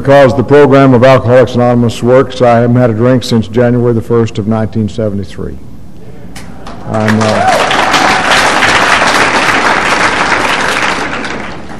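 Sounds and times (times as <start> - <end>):
speech: 0.0 - 5.7, 6.9 - 7.6
audience applauding at an Alcoholics Anonymous meeting: 6.6 - 11.7.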